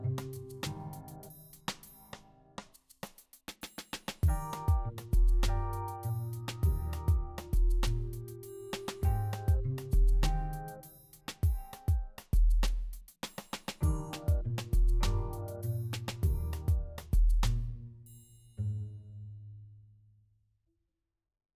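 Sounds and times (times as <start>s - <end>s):
smooth urban love music: 4.2s - 12.2s, 13.8s - 17.6s.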